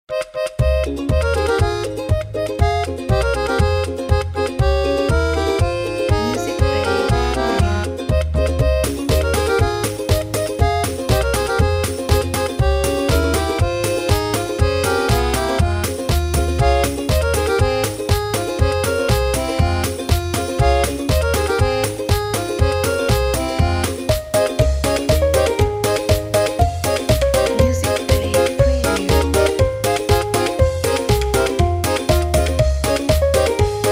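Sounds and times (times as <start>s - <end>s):
Russian folk music: 0.1s - 33.9s.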